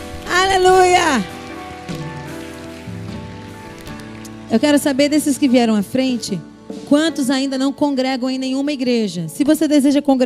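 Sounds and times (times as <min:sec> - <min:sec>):
audience applause: 0:00.0 - 0:05.4
speech: 0:00.5 - 0:02.0, 0:04.5 - 0:10.2.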